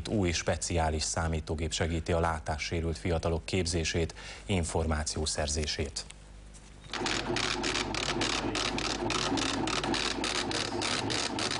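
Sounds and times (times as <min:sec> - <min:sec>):
speech: 0:00.0 - 0:06.2
braille embosser printing: 0:06.9 - 0:11.5.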